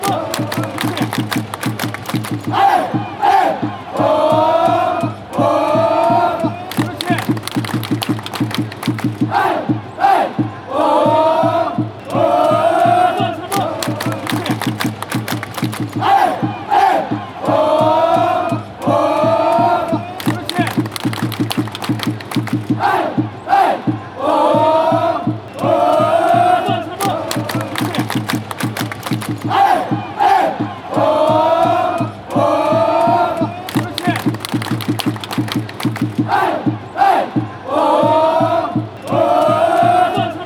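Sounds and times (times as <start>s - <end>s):
football fans chanting: 0.0s - 40.4s.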